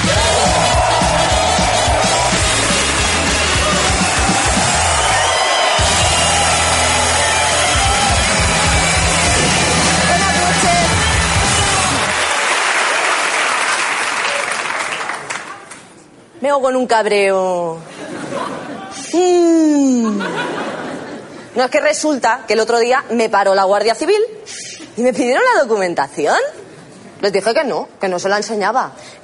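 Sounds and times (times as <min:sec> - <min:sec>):
audience applause: 0:00.0 - 0:15.9
speech: 0:16.5 - 0:18.0, 0:19.1 - 0:20.5, 0:21.6 - 0:26.6, 0:27.2 - 0:29.2
laughter: 0:17.9 - 0:19.1, 0:19.8 - 0:21.5.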